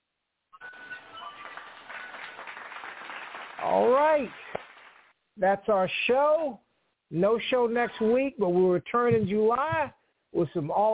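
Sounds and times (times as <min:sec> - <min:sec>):
applause clapping sound effect: 0:00.6 - 0:05.1
speech: 0:03.8 - 0:04.4, 0:05.4 - 0:10.9.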